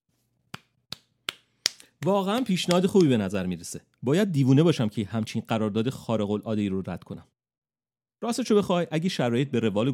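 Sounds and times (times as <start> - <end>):
hands clapping: 0.5 - 3.4
speech: 2.0 - 7.3, 8.2 - 9.9.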